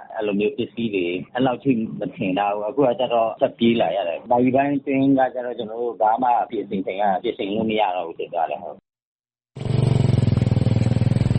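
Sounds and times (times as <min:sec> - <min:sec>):
speech: 0:00.2 - 0:08.9
motorcycle engine as people flee a flood: 0:09.6 - 0:11.3.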